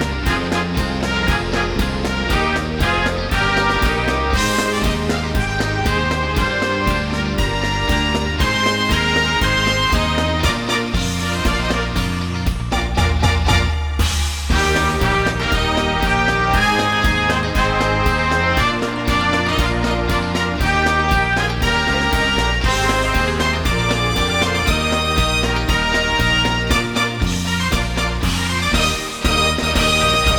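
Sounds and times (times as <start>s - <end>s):
victory song: 0.0s - 30.3s.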